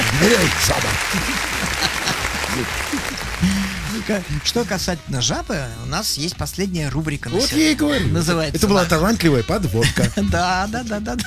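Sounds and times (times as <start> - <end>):
applause: 0.0 - 5.0
laughter: 0.0 - 5.0, 9.5 - 11.2
speech: 0.2 - 2.0, 2.6 - 11.2.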